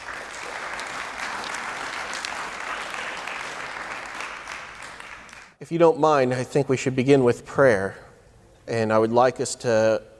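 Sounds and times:
audience applause welcoming an associate pastor at a Springfield gathering: 0.0 - 5.6
speech: 5.6 - 8.0, 8.7 - 10.1.

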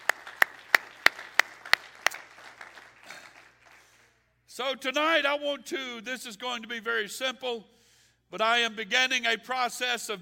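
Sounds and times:
audience clapping hands: 0.0 - 4.2
speech: 4.6 - 10.2.

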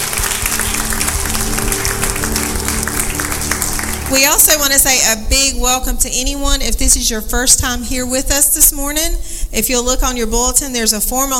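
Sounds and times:
church congregation applause at a morning service: 0.0 - 5.0
speech: 4.1 - 11.3.

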